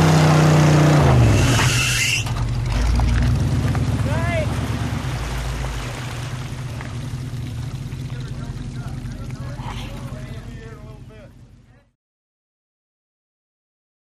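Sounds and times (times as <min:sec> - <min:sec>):
drag boat loading: 0:00.2 - 0:11.1.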